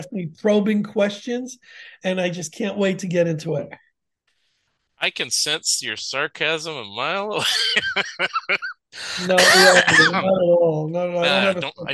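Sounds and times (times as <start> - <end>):
speech: 0.0 - 3.8, 5.0 - 11.9
laughter: 5.1 - 10.4, 11.2 - 11.9
person coughing from allergies: 7.3 - 10.3.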